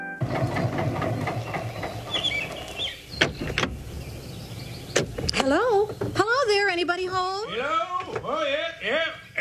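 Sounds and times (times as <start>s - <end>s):
old car engine driving down road: 0.2s - 6.3s
speech: 5.5s - 9.2s.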